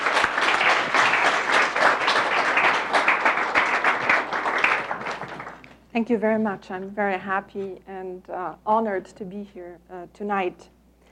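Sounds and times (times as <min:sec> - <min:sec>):
lecture audience applause welcoming a speaker: 0:00.0 - 0:05.8
speech: 0:06.0 - 0:10.7.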